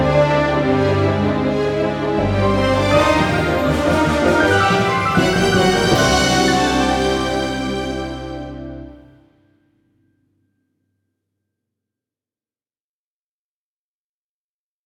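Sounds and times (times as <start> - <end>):
Hollywood-style orchestral music: 0.0 - 9.2.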